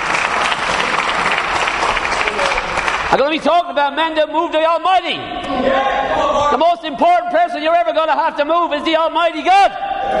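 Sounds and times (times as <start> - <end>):
audience applause: 0.0 - 3.4
speech: 3.1 - 10.1.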